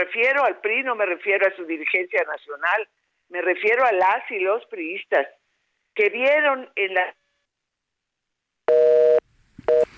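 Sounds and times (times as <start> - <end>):
speech: 0.0 - 5.4, 6.0 - 7.2
telephone busy signal after a call is cut off: 8.7 - 9.9.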